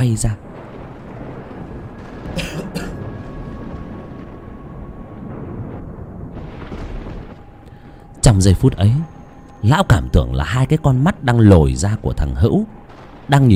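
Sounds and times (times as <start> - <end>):
speech: 0.0 - 0.5, 8.4 - 13.5
thunder rumbling: 0.0 - 13.5.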